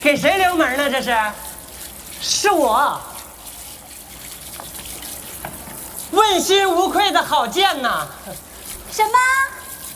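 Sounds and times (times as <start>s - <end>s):
speech: 0.0s - 1.5s, 2.2s - 3.1s, 6.1s - 9.6s
shower water running: 0.0s - 9.9s.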